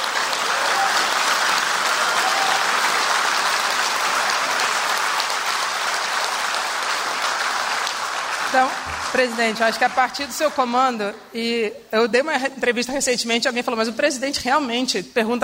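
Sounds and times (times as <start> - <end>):
big round of applause from a crowd: 0.0 - 10.9
speech: 8.6 - 15.4.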